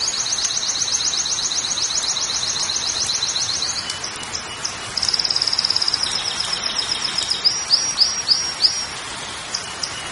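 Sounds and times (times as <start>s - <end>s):
Belgian canary song: 0.0s - 10.1s.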